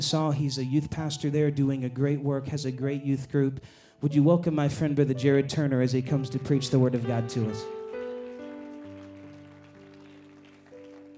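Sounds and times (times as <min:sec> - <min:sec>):
speech: 0:00.0 - 0:07.8
audience clapping: 0:06.5 - 0:11.1.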